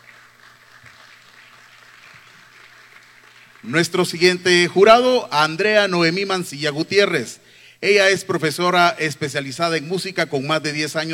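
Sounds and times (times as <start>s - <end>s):
audience applause: 0.0s - 3.8s
speech: 3.6s - 11.1s.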